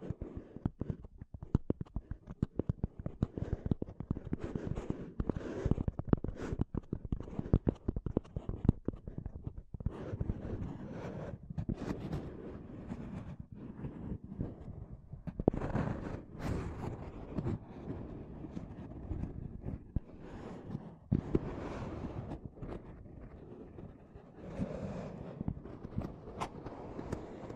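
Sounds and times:
intense tapping and scratching on a microphone: 0.0 - 27.5.

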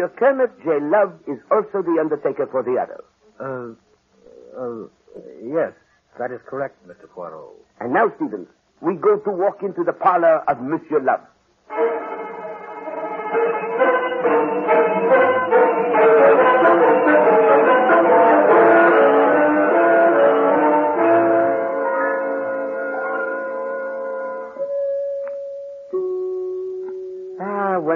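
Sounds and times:
speech: 0.0 - 3.9, 4.6 - 12.0
doorbell chimes ringing: 12.3 - 27.4.

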